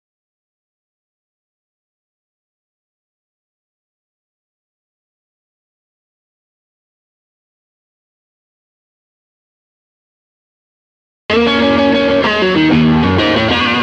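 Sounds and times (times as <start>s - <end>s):
rhythm guitar playing: 11.3s - 13.8s.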